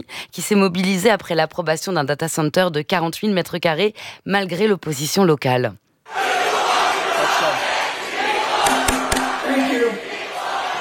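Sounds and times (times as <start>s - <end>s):
speech: 0.3s - 6.2s
protesters chanting a slogan: 6.1s - 10.7s
sharp knocks: 8.6s - 9.4s.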